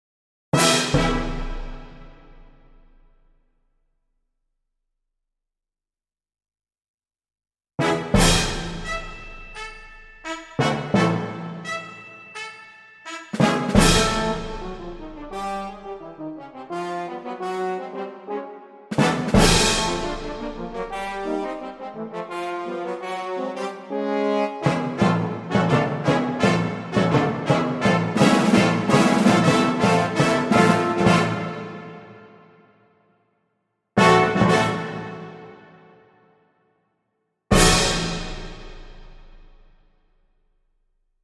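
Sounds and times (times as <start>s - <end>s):
brass instruments: 0.6s - 3.0s, 7.8s - 32.9s, 34.0s - 36.4s, 37.5s - 39.6s.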